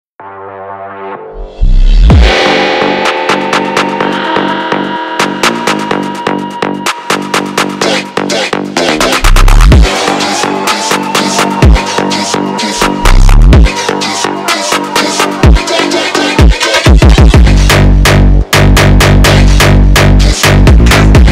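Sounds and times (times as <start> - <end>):
Brazilian phonk music: 0.2 - 21.3.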